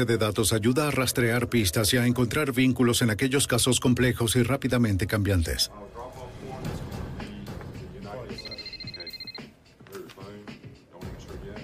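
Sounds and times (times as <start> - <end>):
speech: 0.0 - 6.2
telephone ringing: 8.3 - 9.5.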